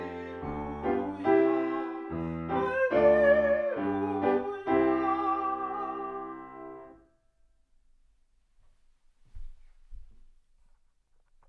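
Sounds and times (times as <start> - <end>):
choral hymn singing: 0.0 - 6.9.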